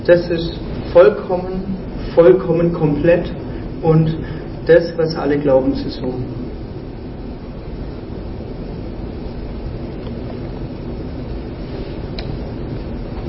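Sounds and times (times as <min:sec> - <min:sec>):
speech: 0:00.0 - 0:06.4
air conditioning hum: 0:00.0 - 0:13.2
breathing: 0:02.0 - 0:02.2, 0:03.4 - 0:04.6.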